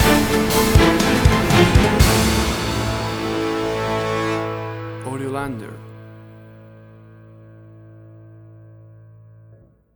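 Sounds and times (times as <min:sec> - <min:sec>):
big epic music stinger: 0:00.0 - 0:05.4.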